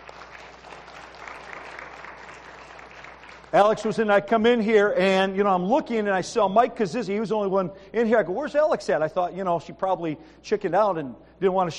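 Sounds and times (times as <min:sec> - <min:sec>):
audience applause: 0:00.0 - 0:03.7
speech: 0:03.5 - 0:11.7.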